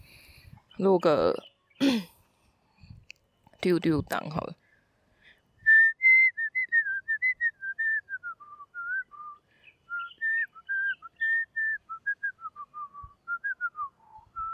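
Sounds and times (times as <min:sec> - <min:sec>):
speech: 0:00.8 - 0:01.9, 0:03.6 - 0:04.6
person whistling a tune: 0:05.6 - 0:14.5.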